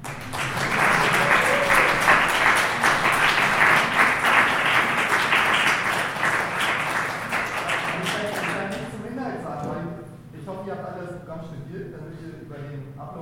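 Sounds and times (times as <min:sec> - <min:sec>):
audience applause for performers of a university stage show: 0:00.0 - 0:08.9.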